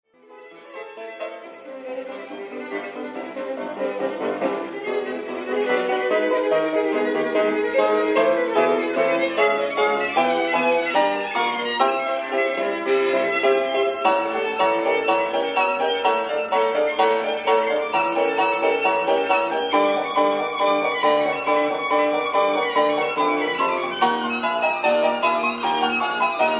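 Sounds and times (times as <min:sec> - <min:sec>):
violin: 0:00.2 - 0:26.5.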